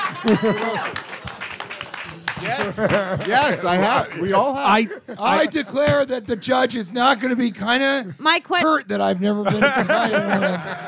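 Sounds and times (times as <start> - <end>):
laughter: 0.0 - 1.0, 2.4 - 6.9, 9.0 - 10.8
audience clapping: 0.0 - 4.7
speech: 0.2 - 1.1, 2.4 - 10.8.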